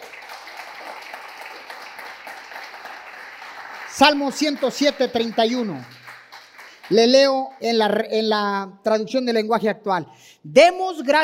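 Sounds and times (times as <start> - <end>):
audience applause: 0.0 - 7.5
speech: 4.0 - 6.0, 6.9 - 11.2.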